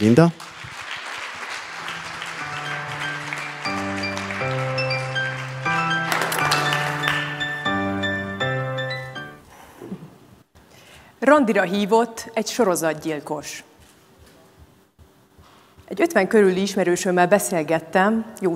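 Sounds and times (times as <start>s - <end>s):
speech: 0.0s - 0.5s, 11.2s - 13.7s, 15.9s - 18.5s
warm applause welcoming a speaker: 0.0s - 8.3s.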